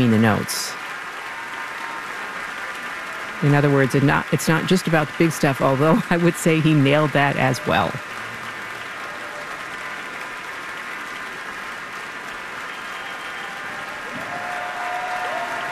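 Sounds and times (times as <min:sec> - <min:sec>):
speech: 0:00.0 - 0:00.8, 0:03.4 - 0:08.1
concert hall audience standing ovation applause: 0:00.0 - 0:15.7
faint whistle-like tone: 0:12.7 - 0:13.8.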